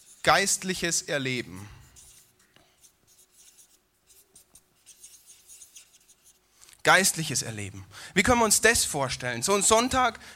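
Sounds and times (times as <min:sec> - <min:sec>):
speech: 0:00.2 - 0:01.8, 0:06.9 - 0:10.3
marker drawing and writing on a board: 0:02.0 - 0:06.4.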